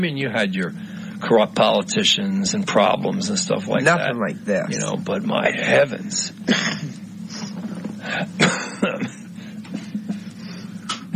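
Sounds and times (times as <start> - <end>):
speech: 0.0 - 7.4, 8.1 - 9.2
person coughing: 6.5 - 6.9, 8.0 - 9.9.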